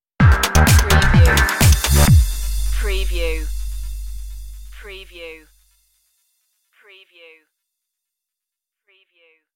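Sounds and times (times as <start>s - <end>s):
music stinger: 0.2s - 5.7s.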